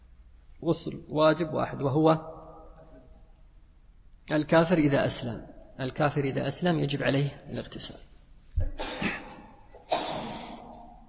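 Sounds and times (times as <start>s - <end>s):
speech: 0.6s - 2.4s, 4.3s - 8.8s
person sneezing: 8.6s - 11.0s.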